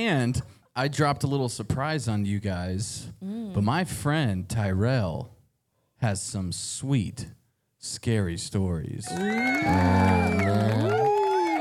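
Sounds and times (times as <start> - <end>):
speech: 0.0 - 5.4, 6.0 - 11.0
crowd cheering sound effect: 9.0 - 11.5.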